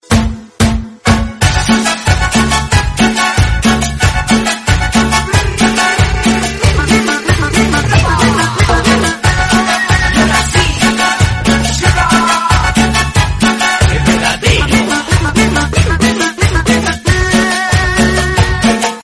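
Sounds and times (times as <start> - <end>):
cumbia music: 0.0 - 19.0.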